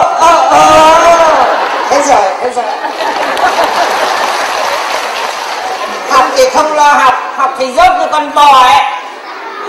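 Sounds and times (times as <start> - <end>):
laughter: 0.1 - 6.1
audience applause at a Vietnamese comedy sketch stage show: 2.8 - 6.4
speech: 6.3 - 9.0.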